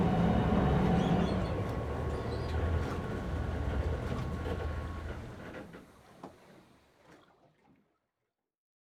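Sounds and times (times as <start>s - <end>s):
emergency patrol boat driving in reverse: 0.0s - 5.7s.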